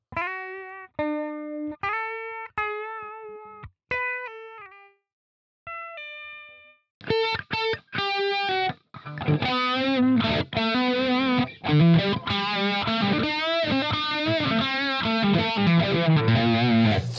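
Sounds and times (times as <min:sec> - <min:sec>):
electric guitar played through an automatic wah effect: 0:00.0 - 0:04.8, 0:05.7 - 0:17.1.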